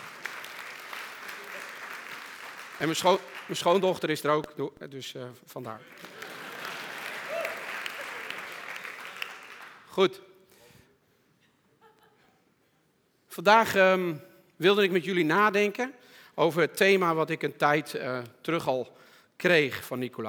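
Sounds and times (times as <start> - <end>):
audience clapping: 0.0 - 4.5, 5.6 - 10.0
speech: 2.8 - 6.1, 10.0 - 10.3, 13.4 - 20.2.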